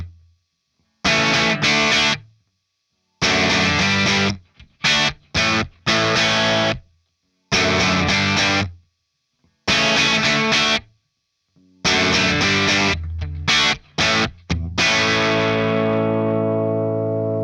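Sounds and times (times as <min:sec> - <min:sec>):
electric guitar riff played without an effects pedal: 0:01.1 - 0:02.2, 0:03.2 - 0:06.8, 0:07.5 - 0:08.7, 0:09.7 - 0:10.8, 0:11.8 - 0:17.4.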